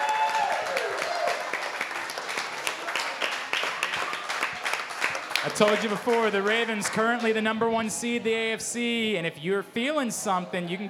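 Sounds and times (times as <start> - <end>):
audience applauding and cheering for two Baltimore Ravens football players at a live show: 0.0 - 7.7
speech: 5.4 - 10.8.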